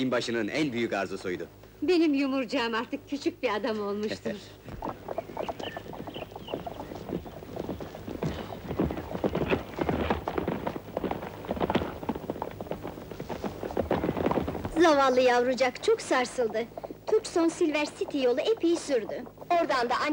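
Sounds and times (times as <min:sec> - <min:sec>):
speech: 0:00.0 - 0:04.9, 0:14.9 - 0:20.1
horse hooves clip-clopping with a boy rider: 0:04.7 - 0:20.1.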